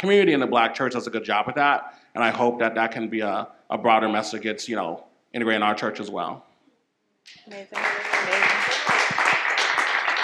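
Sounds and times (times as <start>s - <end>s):
speech: 0.0s - 6.5s, 7.3s - 8.3s
audience clapping: 7.3s - 10.2s
crowd cheering: 7.5s - 10.2s.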